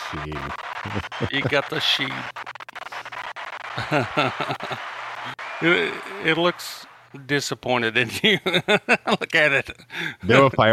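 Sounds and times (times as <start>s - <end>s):
laughter: 0.0s - 2.3s, 2.9s - 7.3s, 7.9s - 10.7s
applause sound effect: 0.0s - 7.3s
speech: 0.1s - 2.6s, 3.8s - 10.7s.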